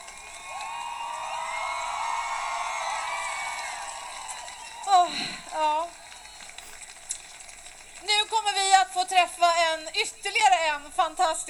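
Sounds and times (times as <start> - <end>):
crowd applause and cheering: 0.0 - 9.9
whoops and shouts: 0.2 - 5.8
speech: 9.0 - 11.4.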